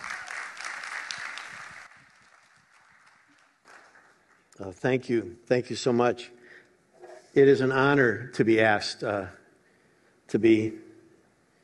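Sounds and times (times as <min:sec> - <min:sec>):
audience applause: 0:00.0 - 0:04.5
speech: 0:04.6 - 0:06.4, 0:07.4 - 0:09.4, 0:10.3 - 0:10.8.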